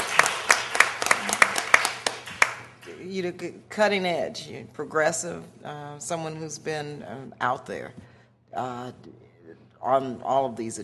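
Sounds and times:
audience applause: 0.0 - 2.7
speech: 3.2 - 9.2, 9.8 - 10.8.

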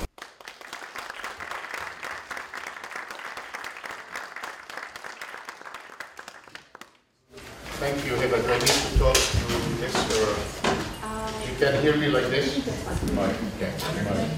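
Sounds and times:
audience applause welcoming a speaker at a Villanova lecture: 0.0 - 7.1
speech: 7.8 - 10.6, 11.6 - 14.3.

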